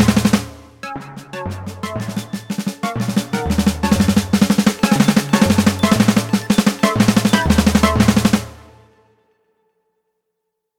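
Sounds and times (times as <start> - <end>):
synth snare drum etude: 1.7 - 8.6.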